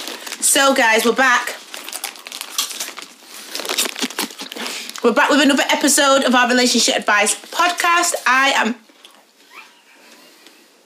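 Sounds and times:
speech: 0:00.5 - 0:01.6, 0:05.0 - 0:08.8
person munching crunchy snacks: 0:01.6 - 0:05.0.

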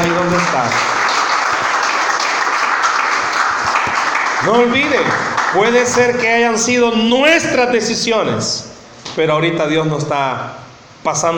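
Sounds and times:
audience applause: 0:00.0 - 0:06.2
speech: 0:00.1 - 0:00.9, 0:04.4 - 0:11.3.

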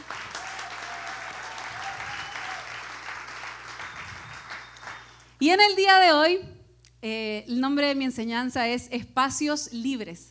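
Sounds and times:
loud audience applause: 0:00.0 - 0:05.3
speech: 0:05.4 - 0:10.2.

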